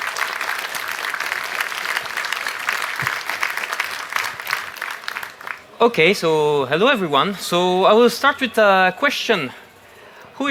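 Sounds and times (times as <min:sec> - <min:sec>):
audience applause: 0:00.0 - 0:05.7
speech: 0:05.8 - 0:09.6.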